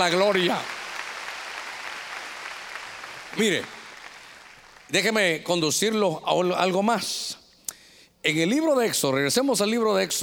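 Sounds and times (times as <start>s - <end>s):
speech: 0.0s - 0.8s, 3.4s - 3.8s, 4.9s - 7.4s, 8.2s - 10.2s
audience clapping: 0.0s - 5.4s.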